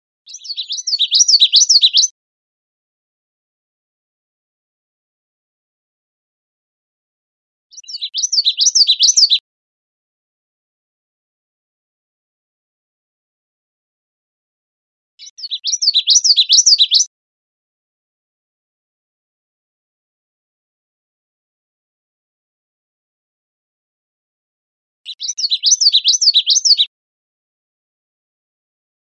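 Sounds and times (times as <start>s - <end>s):
common yellowthroat song: 0.3s - 2.1s, 7.7s - 9.4s, 15.2s - 17.1s, 25.1s - 26.9s.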